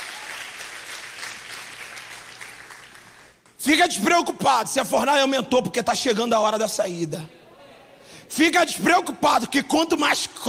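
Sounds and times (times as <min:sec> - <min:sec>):
audience applause: 0:00.0 - 0:03.4
speech: 0:03.6 - 0:07.4, 0:08.3 - 0:10.4.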